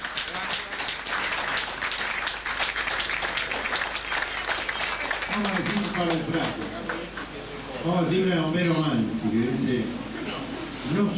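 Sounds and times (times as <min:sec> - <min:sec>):
crowd at an evening gathering applauding first-time attendees: 0:00.0 - 0:07.4
speech: 0:05.4 - 0:06.9, 0:07.8 - 0:10.0, 0:10.9 - 0:11.1.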